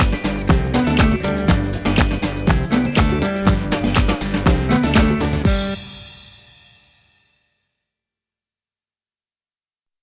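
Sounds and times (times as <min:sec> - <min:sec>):
karaoke singing: 0:00.0 - 0:06.2.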